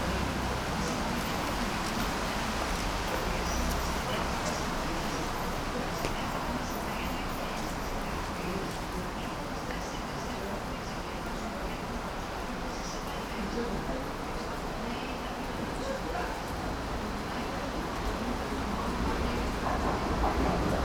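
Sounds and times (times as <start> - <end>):
rain: 0.0 - 20.8
train: 0.0 - 20.8.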